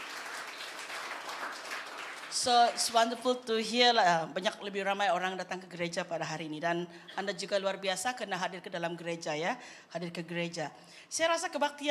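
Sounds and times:
crowd applauding: 0.0s - 2.9s
speech: 2.4s - 11.9s.

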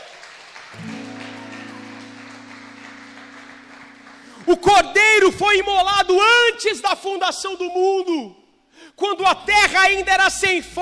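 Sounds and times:
audience applauding: 0.0s - 5.7s
speech: 0.7s - 0.9s, 4.5s - 8.4s, 9.0s - 10.7s.

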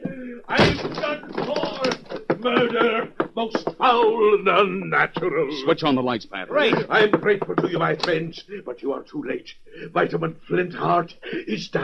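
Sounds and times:
locked door being forced in: 0.5s - 3.7s
speech: 2.4s - 11.8s.

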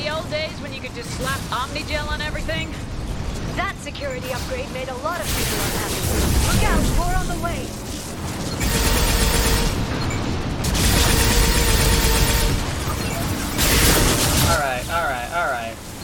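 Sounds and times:
speech: 0.2s - 2.9s, 3.5s - 7.9s, 14.5s - 15.9s
video game rockets firing: 5.2s - 14.9s.

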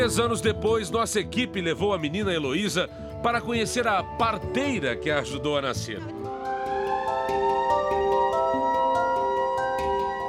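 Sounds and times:
speech: 0.0s - 6.2s
ticking pulse: 6.1s - 10.2s
fire station alarm siren wailing: 6.2s - 10.2s.

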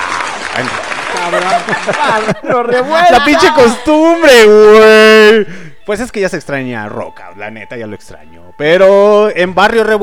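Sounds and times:
applause: 0.0s - 2.4s
speech: 0.6s - 10.0s
laughter: 1.0s - 4.6s.

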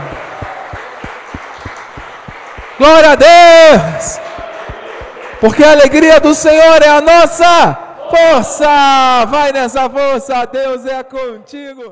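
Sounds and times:
audience applause: 0.0s - 6.5s
speech: 2.8s - 4.2s, 5.4s - 11.9s.

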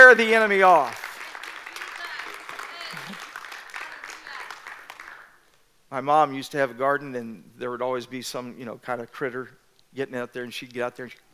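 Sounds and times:
audience clapping hands: 0.0s - 5.4s
speech: 0.1s - 1.0s, 5.9s - 11.2s.

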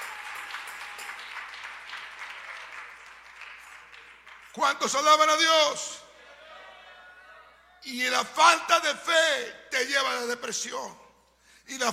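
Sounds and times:
audience applauding: 0.0s - 4.6s
speech: 4.6s - 6.0s, 7.8s - 11.0s, 11.7s - 11.9s.

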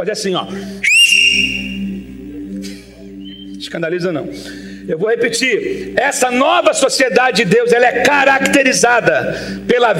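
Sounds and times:
speech: 0.0s - 2.7s, 3.6s - 9.9s
loud sharp whistle: 0.8s - 2.0s.

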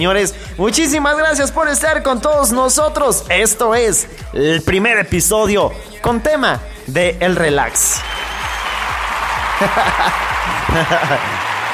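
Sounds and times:
speech: 0.0s - 8.1s, 9.6s - 11.4s
audience applause: 8.0s - 11.7s
laughter: 9.5s - 11.6s.

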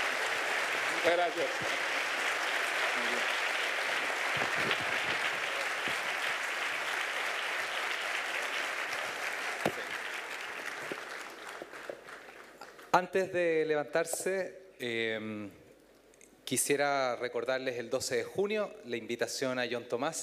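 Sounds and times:
audience applause: 0.0s - 12.9s
speech: 1.0s - 2.0s, 3.0s - 3.4s, 4.4s - 5.4s, 13.0s - 15.6s, 16.5s - 20.2s.

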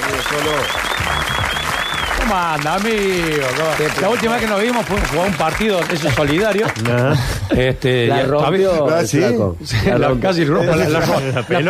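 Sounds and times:
voices cheering: 0.0s - 5.6s
audience applause: 0.0s - 7.1s
whistle: 0.1s - 2.3s
speech: 0.3s - 1.6s, 2.2s - 11.6s
laughter: 10.7s - 11.6s.

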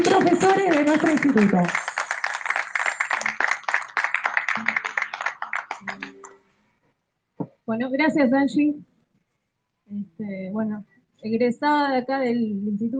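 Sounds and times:
crowd applauding: 0.0s - 6.4s
speech: 0.2s - 1.9s, 7.7s - 8.9s, 9.9s - 12.9s.

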